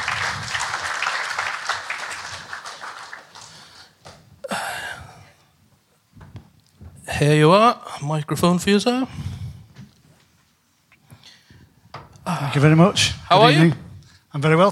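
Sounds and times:
audience applause: 0.0s - 4.1s
speech: 7.2s - 9.2s, 12.5s - 14.7s.

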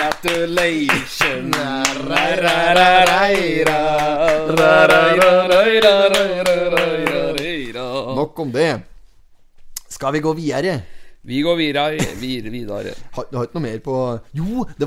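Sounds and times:
applause: 0.0s - 7.5s
speech: 0.2s - 7.0s, 8.2s - 8.9s, 9.9s - 14.8s.

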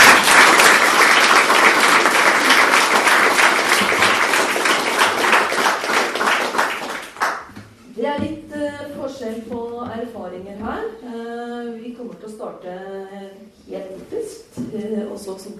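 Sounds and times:
audience applause: 0.0s - 7.5s
speech: 15.1s - 15.5s.

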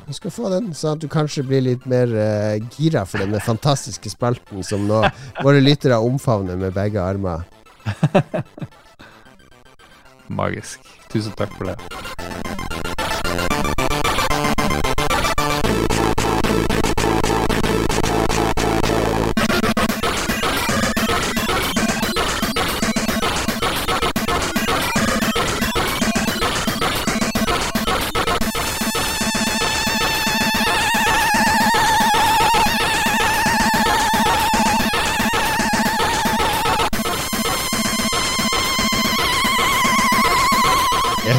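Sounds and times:
speech: 0.1s - 8.8s, 10.3s - 12.5s
laughter: 3.1s - 3.8s, 4.6s - 5.8s, 7.8s - 8.7s
Commodore 64 game music drum solo: 11.4s - 41.3s.

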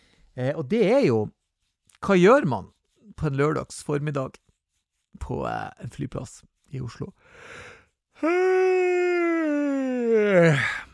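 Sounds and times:
speech: 0.4s - 1.4s, 2.0s - 4.4s, 5.2s - 8.8s, 10.1s - 10.9s
yawn: 8.2s - 10.9s.

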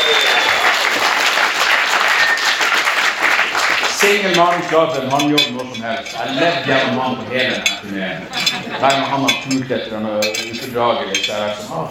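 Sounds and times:
audience applause: 0.0s - 5.0s
laughter: 4.0s - 11.8s
speech: 4.0s - 11.8s.

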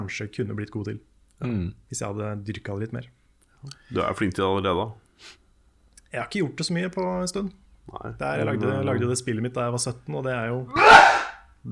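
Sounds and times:
speech: 0.1s - 5.4s, 6.1s - 11.7s
loud sneeze: 10.7s - 11.4s.

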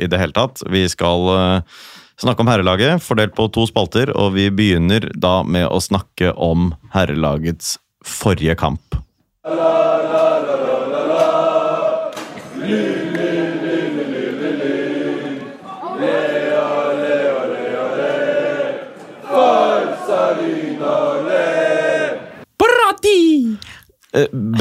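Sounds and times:
speech: 0.0s - 10.7s, 23.4s - 24.5s
football crowd cheering and chanting: 9.4s - 22.4s
laughter: 10.6s - 22.3s.

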